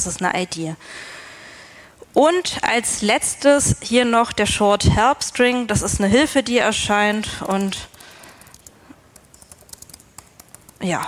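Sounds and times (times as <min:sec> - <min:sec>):
speech: 0:00.0 - 0:01.2, 0:02.1 - 0:07.9, 0:10.8 - 0:11.0
typing text on a computer keyboard: 0:07.0 - 0:11.0.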